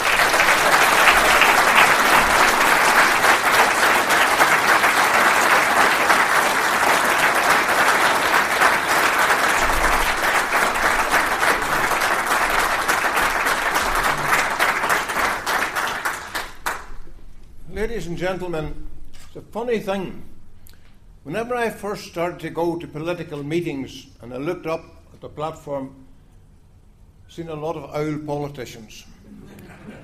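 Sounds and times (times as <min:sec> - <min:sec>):
political meeting audience clapping to welcome a speaker: 0:00.0 - 0:17.2
speech: 0:18.2 - 0:18.8, 0:19.6 - 0:20.3, 0:21.2 - 0:26.0, 0:27.3 - 0:29.6
laughter: 0:29.3 - 0:30.0.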